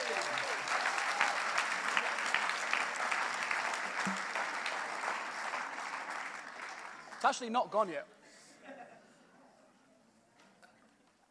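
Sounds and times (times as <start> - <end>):
audience applause: 0.0 - 7.5
speech: 7.2 - 8.2.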